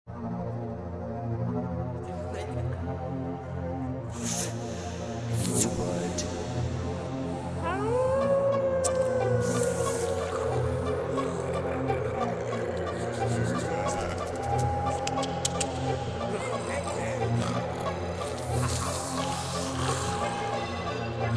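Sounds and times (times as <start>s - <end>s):
horror soundscape: 0.2s - 21.3s.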